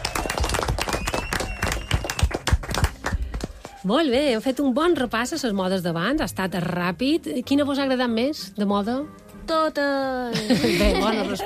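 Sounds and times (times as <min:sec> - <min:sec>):
strong applause from a crowd: 0:00.0 - 0:03.8
speech: 0:03.8 - 0:11.4
laughter: 0:10.3 - 0:11.4.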